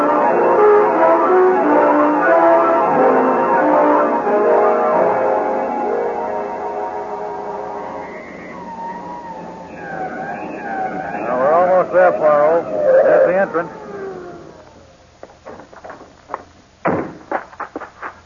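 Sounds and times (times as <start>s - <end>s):
police car siren wailing: 0.0s - 15.0s
dense rumble of engine and traffic noise: 5.5s - 16.8s.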